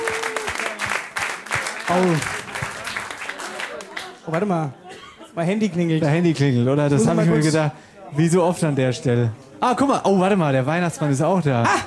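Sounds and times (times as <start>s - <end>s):
crowd applauding: 0.0s - 4.6s
speech: 1.9s - 2.4s, 4.3s - 4.8s, 5.4s - 11.8s.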